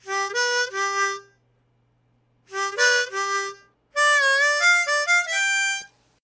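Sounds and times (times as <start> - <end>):
harmonica: 0.0 - 1.4, 2.5 - 6.0.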